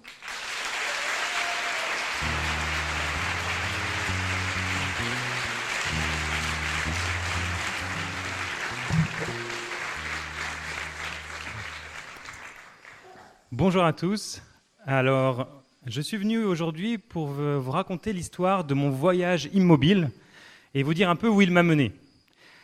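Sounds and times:
audience applause: 0:00.0 - 0:13.0
low musical tone: 0:02.2 - 0:12.2
speech: 0:13.6 - 0:22.0.

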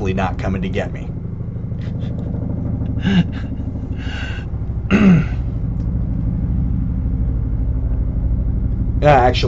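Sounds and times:
speech: 0:00.0 - 0:01.2, 0:03.0 - 0:05.3, 0:09.0 - 0:09.4
Border Patrol helicopter flying overhead: 0:00.0 - 0:09.4
throat clearing: 0:04.9 - 0:05.4.

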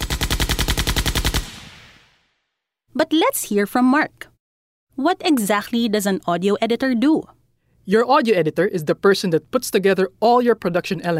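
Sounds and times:
high-powered firearm sound effects: 0:00.0 - 0:02.4
speech: 0:03.0 - 0:04.3, 0:05.0 - 0:11.1.

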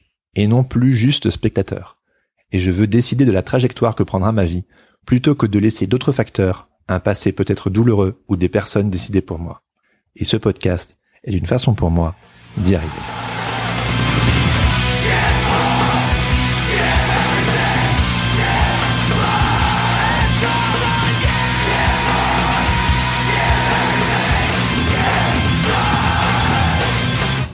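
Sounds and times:
speech: 0:00.4 - 0:13.2
rock song: 0:12.9 - 0:27.5.

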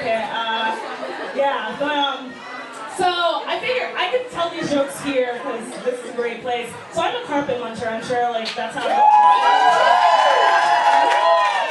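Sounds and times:
speech: 0:01.4 - 0:02.4, 0:03.0 - 0:10.1
audience applause: 0:08.8 - 0:11.6.

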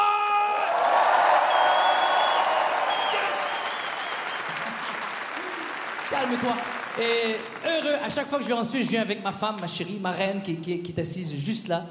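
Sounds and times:
audience applause and cheering: 0:00.0 - 0:08.5
speech: 0:06.2 - 0:11.8.

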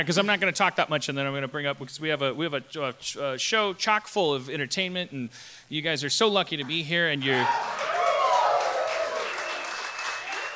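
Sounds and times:
speech: 0:00.0 - 0:07.9
audience applause: 0:07.3 - 0:10.5.

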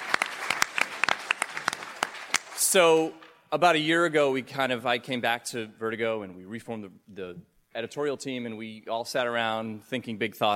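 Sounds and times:
audience applause: 0:00.0 - 0:02.6
speech: 0:02.7 - 0:10.5.

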